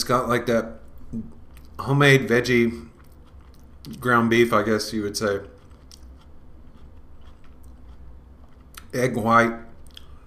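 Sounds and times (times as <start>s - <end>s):
low steady hum: 0.0s - 10.2s
speech: 0.1s - 2.9s, 3.8s - 5.5s, 8.9s - 9.7s
person biting and chewing a spicy tortilla wrap: 0.9s - 1.8s, 2.7s - 4.0s, 5.4s - 8.9s, 9.8s - 10.2s.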